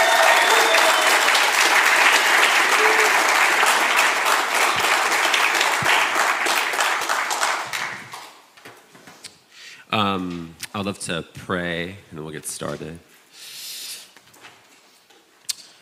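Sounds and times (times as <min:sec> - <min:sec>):
congregation clapping to welcome a preacher at a morning church service: 0:00.0 - 0:08.5
speech: 0:10.2 - 0:13.1.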